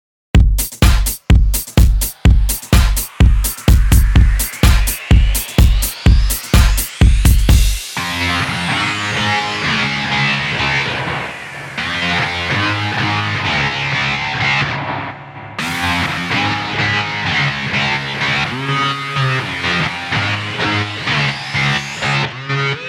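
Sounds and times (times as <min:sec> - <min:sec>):
bass: 0:01.8 - 0:22.8.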